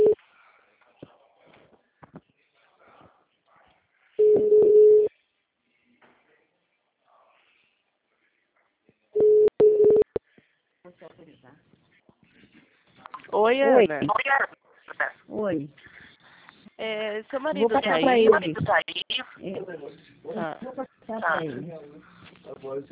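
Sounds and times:
telephone ringback tone: 4.2 - 5.1, 9.2 - 10.2
speech: 10.9 - 16.0, 16.8 - 22.8.

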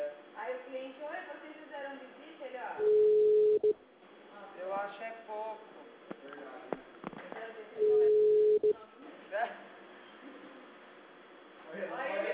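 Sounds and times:
unanswered telephone ring tone on the line during a call: 2.8 - 3.7, 7.8 - 8.7.

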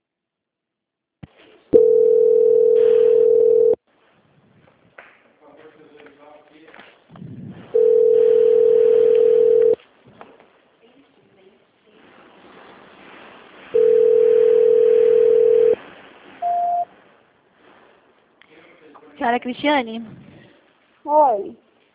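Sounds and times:
telephone ringing tone on an unanswered call transfer: 1.8 - 3.8, 7.8 - 9.8, 13.8 - 15.8, 16.4 - 16.9
shuffling: 3.0 - 21.0
short higher beep: 16.4 - 16.9
speech: 19.4 - 20.2, 21.0 - 21.6.

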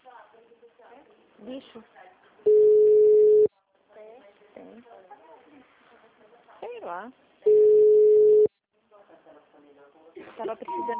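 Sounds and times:
speech: 1.4 - 2.6, 6.9 - 7.2, 10.4 - 10.9
telephone busy signal: 2.5 - 3.5, 7.5 - 8.5.

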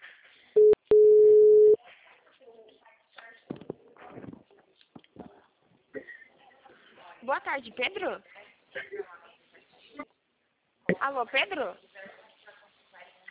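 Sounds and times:
telephone ringback tone on an outgoing call: 0.6 - 1.8
speech: 7.3 - 9.2, 11.0 - 11.9.

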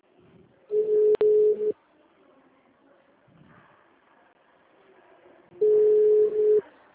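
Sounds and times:
unanswered phone ringback tones: 0.7 - 1.7, 5.6 - 6.6.

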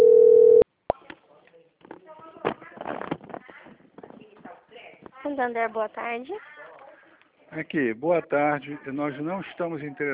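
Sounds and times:
telephone ringing unanswered: 0.0 - 0.6
speech: 5.4 - 6.5, 7.5 - 10.1.

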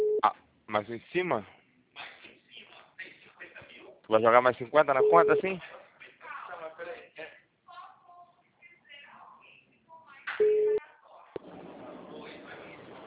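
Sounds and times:
telephone tone after dropped call: 0.0 - 0.2, 5.0 - 5.4, 10.4 - 10.8
speech: 0.2 - 1.6, 4.1 - 5.7
people talking over a phone line: 4.6 - 6.9, 7.7 - 10.9.

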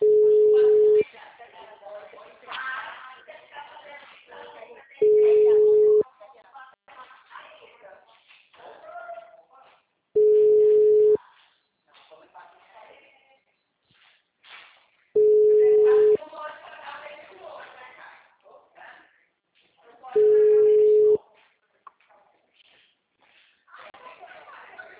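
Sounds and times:
telephone ringback tone on an outgoing call: 0.0 - 1.0, 5.0 - 6.0, 10.2 - 11.2, 15.2 - 16.2, 20.2 - 21.2
people talking: 0.0 - 9.7, 15.2 - 19.1, 19.8 - 21.2, 23.7 - 24.9.

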